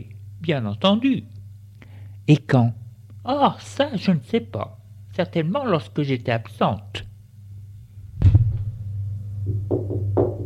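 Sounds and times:
speech: 0.0s - 1.4s, 2.3s - 7.1s
knocking on a door: 9.4s - 10.4s.

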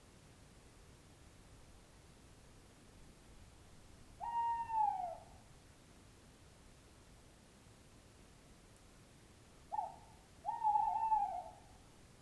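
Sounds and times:
owl hooting: 4.2s - 5.4s, 9.7s - 11.8s.

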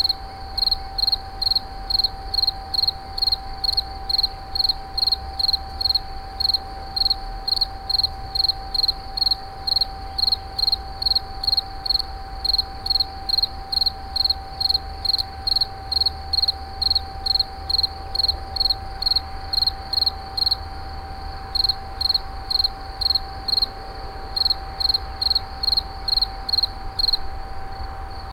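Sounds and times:
insect calling with pulsed chirps: 0.0s - 23.7s, 24.4s - 27.3s
steady mechanical hum: 0.0s - 28.3s.

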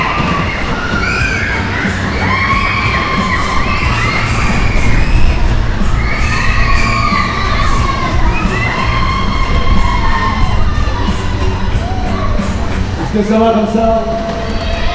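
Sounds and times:
children shouting and screaming at the Le Tourbillon ride, Troyes March fair: 0.0s - 14.9s
dense steady rumble: 0.0s - 14.9s.

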